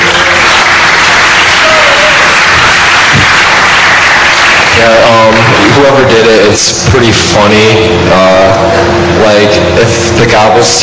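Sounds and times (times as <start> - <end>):
audience applause: 0.0 - 6.0
speech: 4.8 - 10.8.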